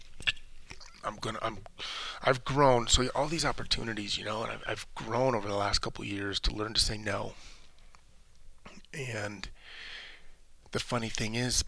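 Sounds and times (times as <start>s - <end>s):
person spitting: 0.1s - 1.8s
speech: 1.0s - 7.6s, 8.9s - 9.9s, 10.7s - 11.6s.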